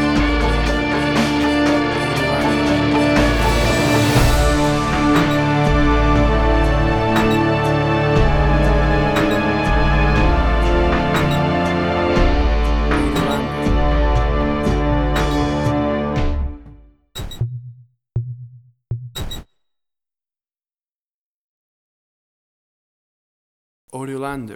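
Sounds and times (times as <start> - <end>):
crime drama music: 0.0 - 17.5.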